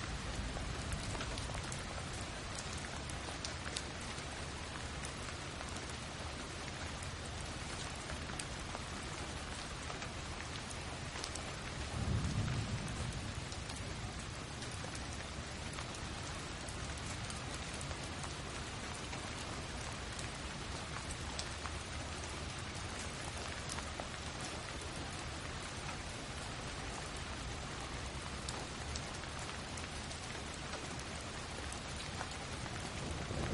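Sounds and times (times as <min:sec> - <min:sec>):
rain showers falling on surfaces: 0:00.0 - 0:33.5.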